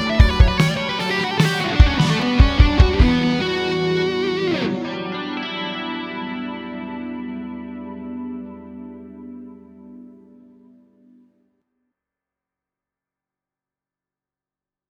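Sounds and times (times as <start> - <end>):
classic rock guitar through Ampeg amplifier: 0.0 - 10.8.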